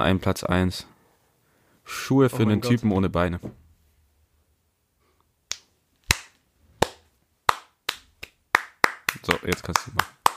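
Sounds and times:
speech: 0.0 - 0.9, 1.9 - 3.6, 9.5 - 10.2
hand clapping: 5.5 - 10.3.

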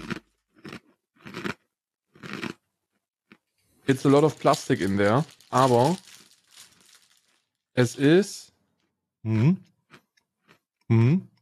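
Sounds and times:
crunching and eating a cookie: 0.0 - 8.0
speech: 3.9 - 6.1, 7.8 - 8.5, 9.2 - 9.7, 10.9 - 11.3.

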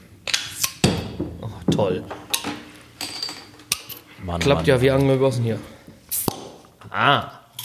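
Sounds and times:
speech: 1.8 - 2.2, 4.2 - 5.8, 6.9 - 7.4
glasses clinking in a toast: 3.0 - 4.0.

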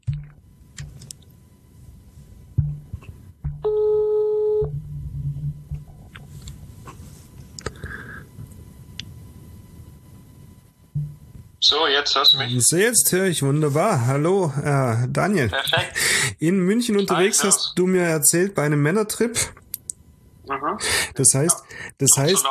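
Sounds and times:
faint low hum: 0.0 - 22.4
electronic telephone line tone as a call is placed: 3.6 - 4.7
speech: 11.7 - 19.6, 20.6 - 22.4.

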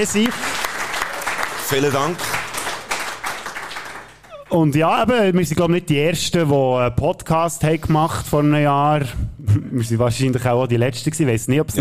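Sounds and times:
speech: 0.0 - 0.6, 1.7 - 2.4, 4.5 - 11.7
audience applause: 0.0 - 4.5.

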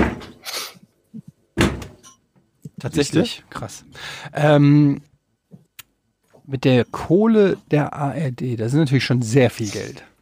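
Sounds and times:
kicks against a refrigerator: 0.0 - 0.3, 1.6 - 2.0
speech: 2.8 - 5.1, 6.5 - 10.1.

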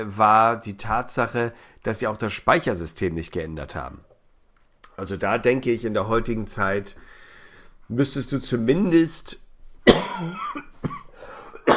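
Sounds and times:
speech: 0.0 - 4.1, 5.0 - 7.2, 7.9 - 11.0
faint breathing and throat noise: 1.5 - 1.8, 7.0 - 7.9, 11.1 - 11.6
person coughing into a microphone: 9.9 - 11.7.

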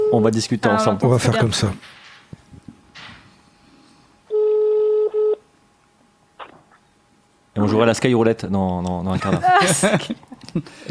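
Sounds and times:
speech: 0.1 - 2.0, 7.6 - 10.8
telephone ringing out: 4.3 - 5.4
laughter: 9.1 - 10.8.

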